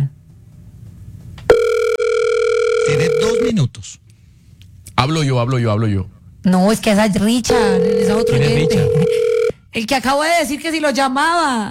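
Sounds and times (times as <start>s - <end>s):
telephone ringback tone: 1.5s - 3.5s, 7.5s - 9.5s
speech: 3.5s - 4.0s, 5.1s - 11.6s.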